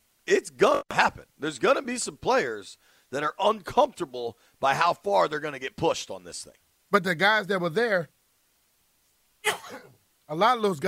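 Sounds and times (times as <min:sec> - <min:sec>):
speech: 0:01.4 - 0:08.2, 0:09.4 - 0:10.8
sneeze: 0:09.4 - 0:10.0.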